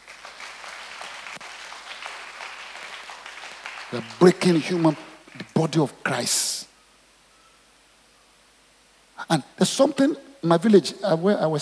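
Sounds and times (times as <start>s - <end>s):
audience clapping hands: 0.0s - 5.7s
speech: 3.9s - 6.7s, 9.3s - 11.6s.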